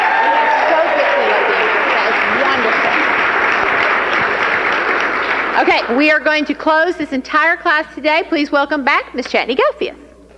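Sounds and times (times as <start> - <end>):
round of applause: 0.0 - 6.1
speech: 5.7 - 10.0.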